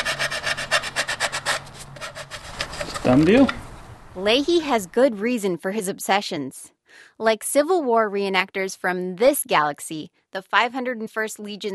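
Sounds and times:
sandpaper rubbed by hand over a stormtrooper costume piece: 0.0 - 3.4
speech: 3.0 - 3.6, 4.2 - 11.7.

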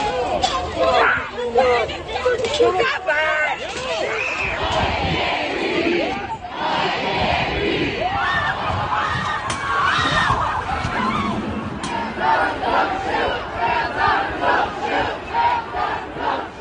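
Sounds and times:
protest crowds chanting in US cities during the George Floyd protests: 0.0 - 9.4, 10.4 - 16.5
people screaming: 8.0 - 13.5.

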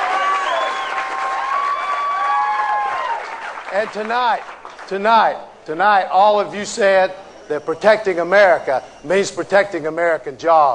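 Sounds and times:
crowd cheering at political rally: 0.0 - 4.9, 6.4 - 9.8
clapping: 0.0 - 5.0
speech: 3.7 - 10.7.

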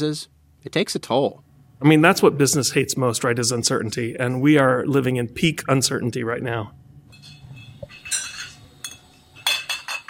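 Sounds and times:
speech: 0.0 - 6.8
low mechanical hum: 0.0 - 10.0
glass bottles clinking on a bottling conveyor: 7.1 - 10.0.

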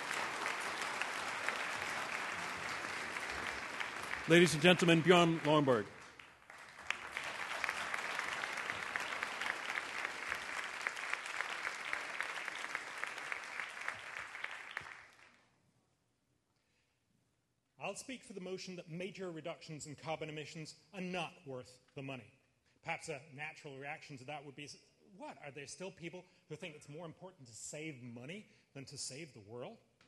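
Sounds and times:
audience applause: 0.0 - 15.3
speech: 4.3 - 6.0, 18.1 - 29.9.

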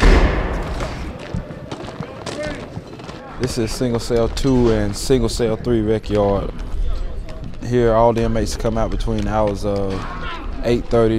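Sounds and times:
heavy prison yard door slamming shut: 0.0 - 1.1
speech: 3.4 - 6.6, 7.7 - 11.1.

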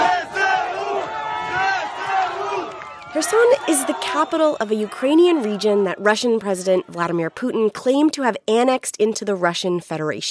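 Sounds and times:
crowd cheering and chanting in Kherson as Ukrainian soldiers enter: 0.0 - 8.1
speech: 3.2 - 10.2.

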